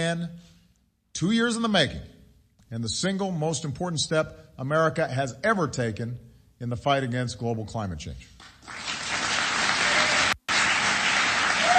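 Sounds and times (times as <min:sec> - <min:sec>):
speech: 0:00.0 - 0:00.5, 0:01.2 - 0:08.9
crowd applause: 0:08.6 - 0:11.7.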